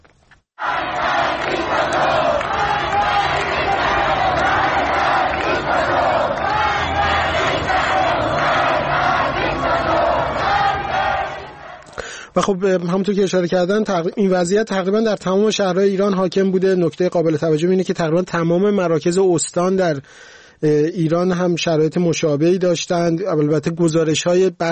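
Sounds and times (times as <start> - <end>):
large crowd of demonstrators shouting and chanting in Shahrak-e Azadi, Tehran: 0.6 - 12.0
speech: 12.4 - 24.7.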